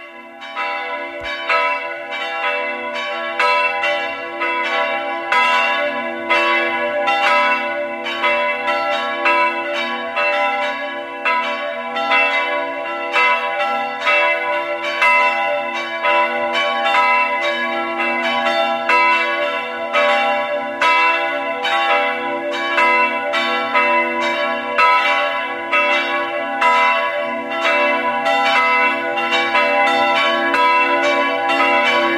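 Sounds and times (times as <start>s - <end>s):
church bells ringing at noon: 0.0s - 32.1s.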